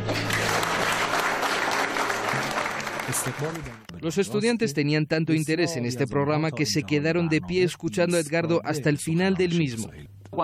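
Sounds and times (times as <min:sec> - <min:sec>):
audience applause welcoming a guest speaker: 0:00.0 - 0:03.9
speech: 0:03.2 - 0:10.4.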